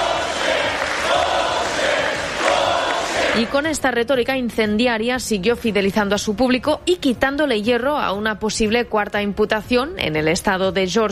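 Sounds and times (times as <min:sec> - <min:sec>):
supporters chanting after Trump speech: 0:00.0 - 0:03.6
speech: 0:03.4 - 0:11.1.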